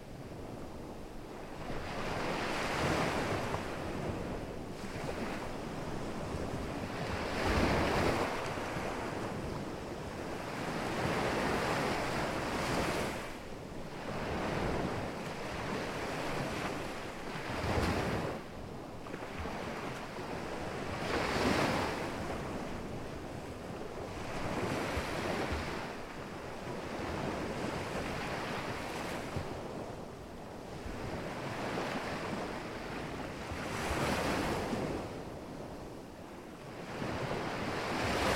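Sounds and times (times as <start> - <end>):
ocean: 0.0 - 38.3.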